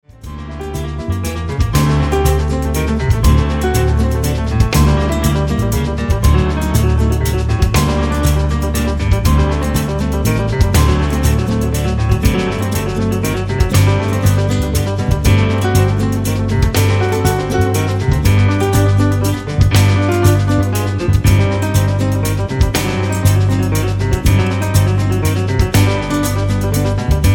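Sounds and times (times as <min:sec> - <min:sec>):
short prelude in C minor: 0:00.0 - 0:27.3.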